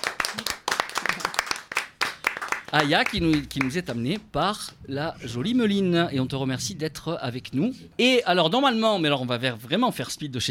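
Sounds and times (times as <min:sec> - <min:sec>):
small audience clapping in welcome: 0:00.0 - 0:04.8
speech: 0:02.7 - 0:10.4.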